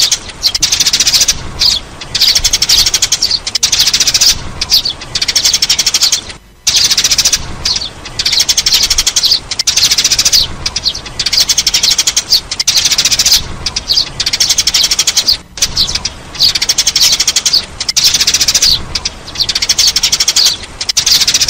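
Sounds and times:
sparrow chirping: 0.0s - 21.4s.

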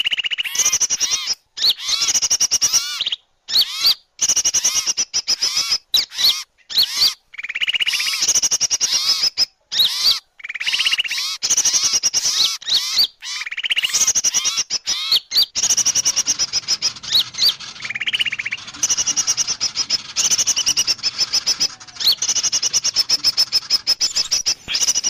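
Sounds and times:
birds chattering and whistling: 0.0s - 25.0s.

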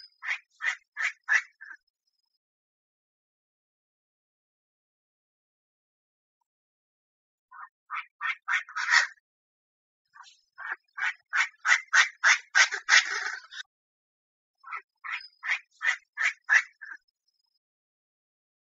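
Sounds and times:
Chinese francolin calling: 0.0s - 1.9s, 7.5s - 9.2s, 10.1s - 13.7s, 14.6s - 17.1s.

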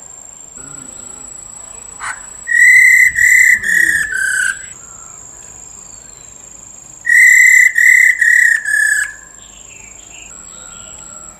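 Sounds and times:
Black-throated laughingthrush call, long level whistled note: 2.0s - 6.3s, 7.0s - 11.3s.

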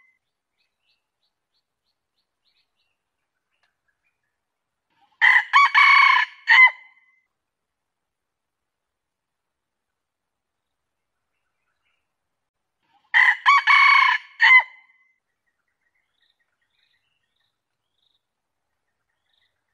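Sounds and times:
junglefowl crowing: 5.2s - 6.9s, 13.1s - 14.8s.

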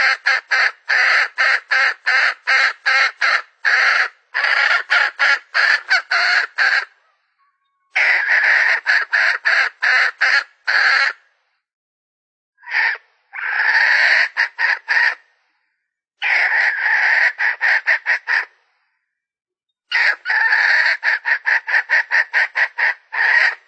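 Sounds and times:
Red junglefowl hen cackling: 0.0s - 11.2s, 12.6s - 15.3s, 16.2s - 18.5s, 19.9s - 23.6s.

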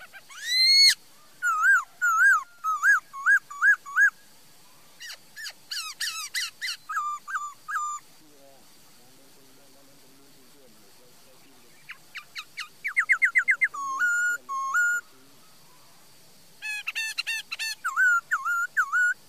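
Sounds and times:
laughingthrush singing: 0.3s - 4.2s, 5.0s - 8.0s, 11.7s - 15.1s, 16.6s - 19.2s.

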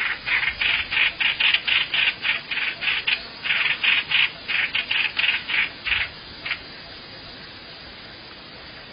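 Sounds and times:
bird rasping calls: 0.0s - 6.7s.

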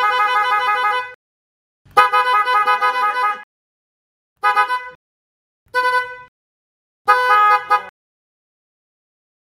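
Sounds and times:
horn imitation: 0.0s - 1.2s, 1.9s - 3.5s, 4.4s - 5.0s, 5.7s - 6.3s, 7.0s - 8.0s.

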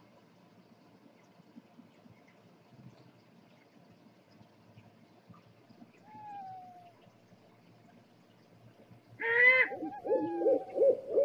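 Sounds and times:
scops owl hooting: 6.1s - 6.9s, 9.2s - 11.2s.

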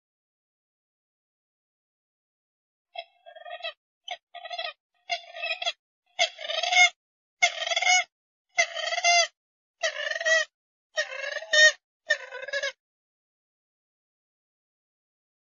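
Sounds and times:
grey-headed swamphen hoarse trumpeting calls: 3.0s - 12.8s.

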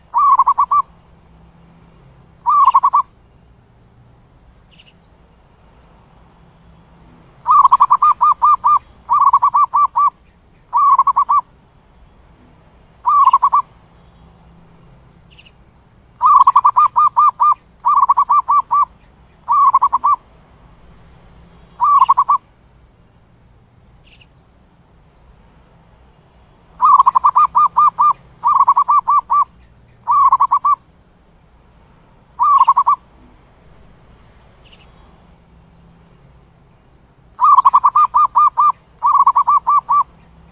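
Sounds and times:
zebra dove cooing: 0.0s - 0.9s, 2.4s - 3.1s, 7.4s - 11.5s, 13.0s - 13.7s, 16.2s - 18.9s, 19.5s - 20.2s, 21.8s - 22.4s, 26.8s - 30.8s, 32.4s - 33.0s, 37.4s - 40.1s.

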